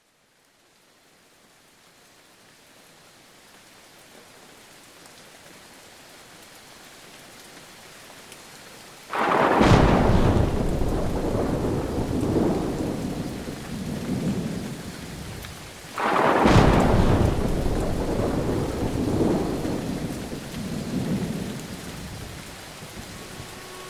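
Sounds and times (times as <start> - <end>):
autumn rain falling: 0.0 - 23.8.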